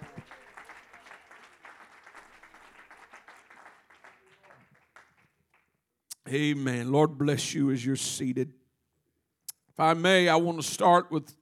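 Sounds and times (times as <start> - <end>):
large crowd applauding: 0.0 - 5.7
speech: 6.3 - 8.6, 9.8 - 11.4.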